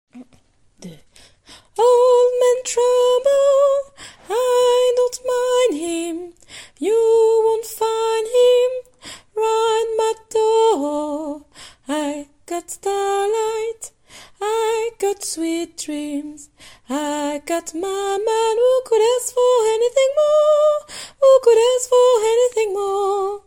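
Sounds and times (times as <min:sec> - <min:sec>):
soprano singing: 0:01.7 - 0:23.4.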